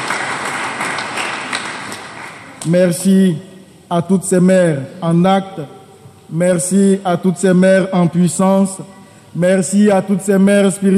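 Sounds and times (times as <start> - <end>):
parish audience applauding: 0.0 - 2.6
speech: 2.6 - 10.9.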